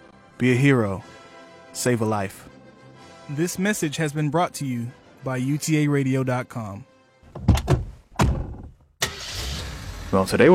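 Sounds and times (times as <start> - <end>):
speech: 0.4 - 1.1, 1.8 - 2.5, 3.3 - 7.5, 10.1 - 10.5
car engine bursts during a car ride: 9.0 - 10.5.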